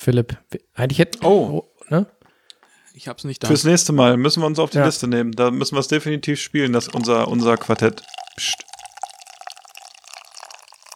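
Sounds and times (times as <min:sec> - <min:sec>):
speech: 0:00.0 - 0:02.2, 0:03.0 - 0:08.7
beer being poured into a glass: 0:06.6 - 0:10.9.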